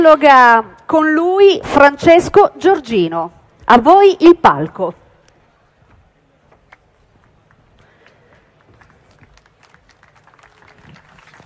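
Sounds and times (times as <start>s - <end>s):
speech: 0.0s - 5.0s
audience applause: 7.8s - 11.4s.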